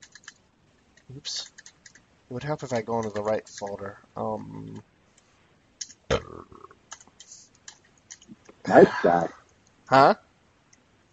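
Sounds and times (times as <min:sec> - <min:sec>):
sharp dry clicks: 0:00.0 - 0:02.0, 0:02.6 - 0:03.8, 0:06.8 - 0:08.6
speech: 0:01.1 - 0:01.5, 0:02.3 - 0:04.9, 0:08.7 - 0:10.2
burp: 0:06.1 - 0:06.8.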